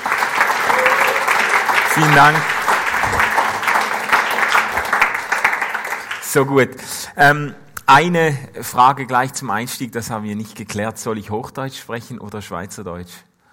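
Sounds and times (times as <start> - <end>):
audience applause: 0.0 - 6.5
speech: 2.0 - 2.6, 6.3 - 13.3.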